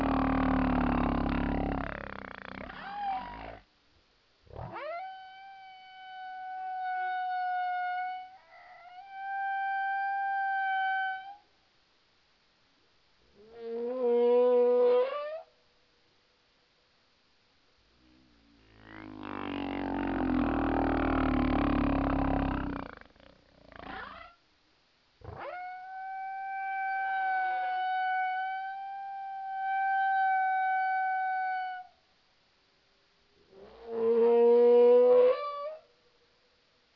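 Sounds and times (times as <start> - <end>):
Hawaii humpback whale song phrase: 0.0 - 3.6, 4.5 - 11.5, 13.4 - 15.5, 18.1 - 24.4, 25.2 - 32.0, 33.5 - 35.9.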